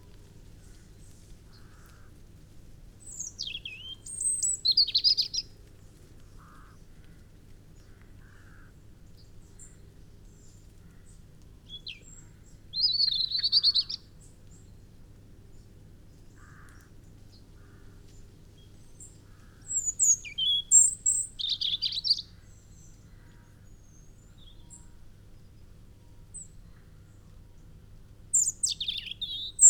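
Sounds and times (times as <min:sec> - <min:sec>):
European robin singing: 0:03.1 - 0:05.5, 0:11.7 - 0:14.0, 0:19.0 - 0:23.0, 0:28.3 - 0:29.6.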